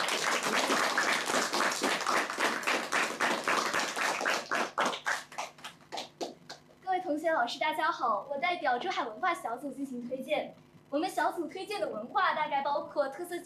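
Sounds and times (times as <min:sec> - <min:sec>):
audience applause: 0:00.0 - 0:06.5
speech: 0:07.4 - 0:13.4.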